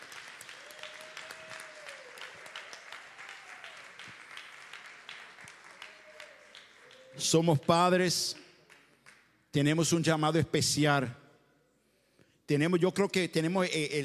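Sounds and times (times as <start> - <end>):
audience applauding: 0.0 - 9.3
speech: 7.2 - 8.4, 9.5 - 11.2, 12.5 - 14.0.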